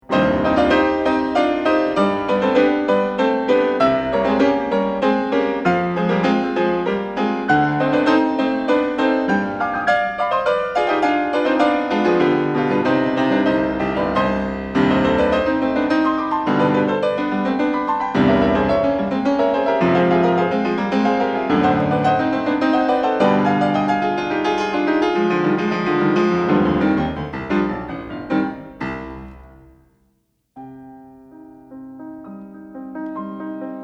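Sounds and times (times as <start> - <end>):
piano variations: 0.0 - 33.8.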